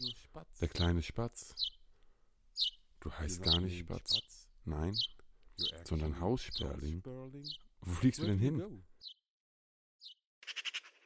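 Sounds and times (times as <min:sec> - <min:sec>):
speech: 0:00.0 - 0:01.8, 0:02.6 - 0:09.2
Eurasian magpie chattering: 0:01.5 - 0:02.0, 0:02.6 - 0:09.2, 0:10.0 - 0:11.0.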